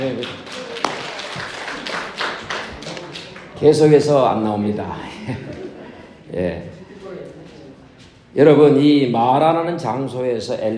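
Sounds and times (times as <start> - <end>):
speech: 0.0 - 0.5, 3.6 - 5.6, 6.3 - 6.7, 8.4 - 10.7
crowd clapping: 0.0 - 3.9
laughter: 5.0 - 7.3.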